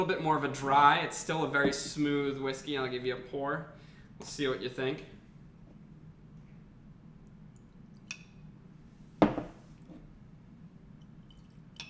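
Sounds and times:
speech: 0.0s - 5.2s
low hum: 0.0s - 11.8s
thick glass bottoms clinking in a toast: 9.2s - 9.6s.

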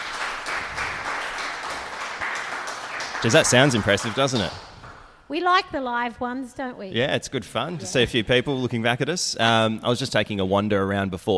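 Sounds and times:
audience applause: 0.0s - 5.2s
speech: 3.2s - 4.7s, 5.3s - 11.3s.

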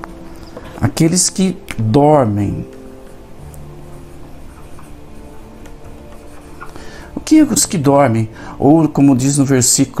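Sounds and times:
steady hiss: 0.0s - 9.9s
speech: 0.8s - 2.8s, 7.3s - 9.9s
writing during a Bible lesson: 2.8s - 7.6s.

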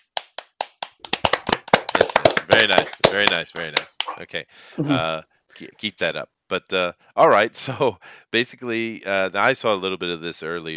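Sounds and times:
hand clapping: 0.0s - 4.2s
speech: 2.5s - 10.7s.

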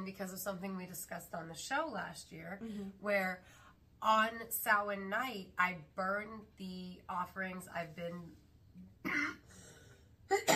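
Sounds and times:
speech: 0.0s - 9.4s, 10.3s - 10.5s
coughing from thick incense smoke: 9.0s - 9.7s, 10.3s - 10.5s
throat clearing: 10.3s - 10.5s.

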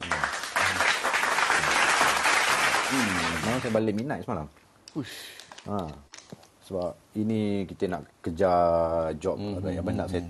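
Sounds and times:
applause: 0.0s - 3.8s
speech: 2.9s - 6.1s, 6.7s - 10.2s.

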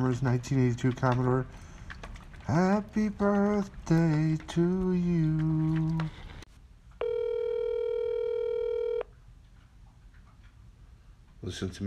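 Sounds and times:
speech: 0.0s - 1.7s, 2.5s - 6.2s, 11.4s - 11.8s
telephone dialing tones: 7.0s - 9.1s.

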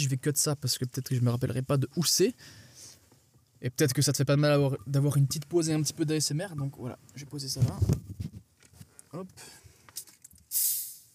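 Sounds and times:
speech: 0.0s - 2.7s, 3.6s - 8.2s, 9.1s - 9.6s
bottle of sparkling water opened with gas hissing: 10.5s - 11.1s.

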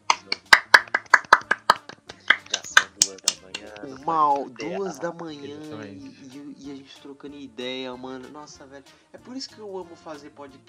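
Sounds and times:
three people clapping hands together: 0.0s - 5.4s
faint murmuring voices: 0.0s - 7.1s
speech: 4.1s - 10.6s.

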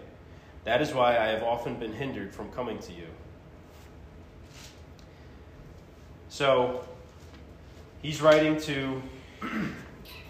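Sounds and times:
speech: 0.6s - 3.3s, 6.4s - 6.9s, 8.0s - 10.2s
sneeze: 9.4s - 10.2s.

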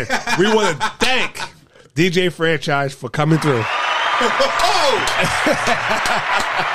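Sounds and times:
laughter: 0.0s - 1.6s, 4.2s - 6.7s
speech: 0.0s - 6.7s
applause sound effect: 3.3s - 6.7s.

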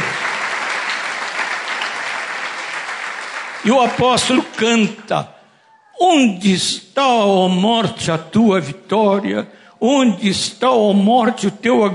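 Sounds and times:
audience applause: 0.0s - 5.1s
speech: 3.6s - 5.4s, 6.0s - 11.9s.

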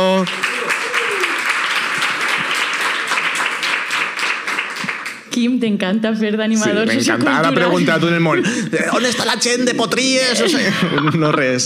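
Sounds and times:
live audience applause and cheering: 0.0s - 5.3s
speech: 5.4s - 11.6s
laughter: 6.7s - 11.6s.

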